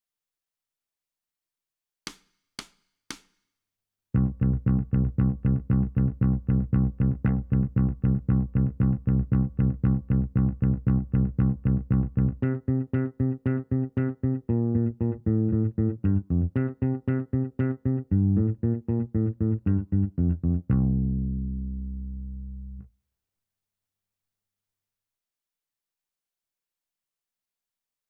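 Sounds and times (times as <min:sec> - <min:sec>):
bass: 0:04.2 - 0:22.9.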